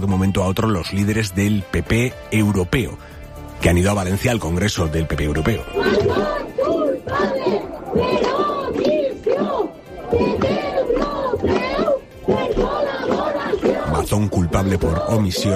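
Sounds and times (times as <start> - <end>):
speech: 0.0 - 6.5, 14.2 - 15.5
protest crowd shouting slogans: 5.6 - 15.5.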